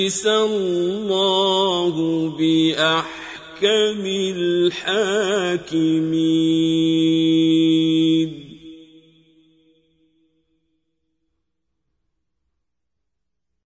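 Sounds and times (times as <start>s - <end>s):
qari reciting the Quran: 0.0s - 9.5s.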